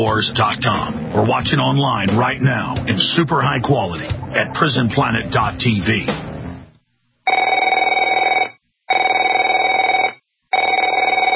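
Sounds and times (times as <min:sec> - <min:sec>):
speech: 0:00.0 - 0:06.3
telephone ringing with trilling electronic bell: 0:07.3 - 0:11.3.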